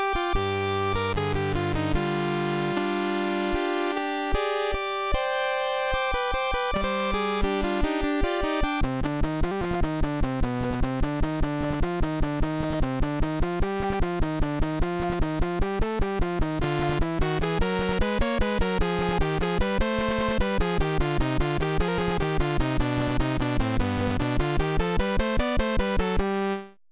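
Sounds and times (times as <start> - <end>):
oriental music in C64 style: 0.0 - 26.8.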